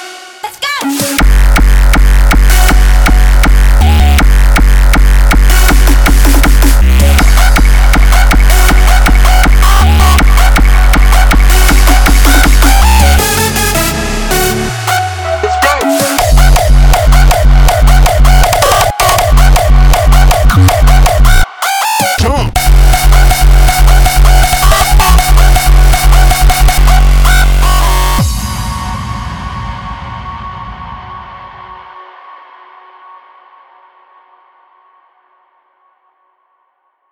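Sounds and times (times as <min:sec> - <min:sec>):
rawstyle music: 0:00.8 - 0:28.2.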